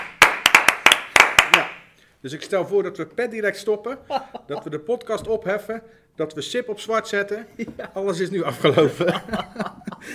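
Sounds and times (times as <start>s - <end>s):
sharp crisp hand claps: 0.0s - 1.9s
speech: 1.6s - 10.1s
laughter: 4.0s - 4.8s, 7.6s - 10.1s.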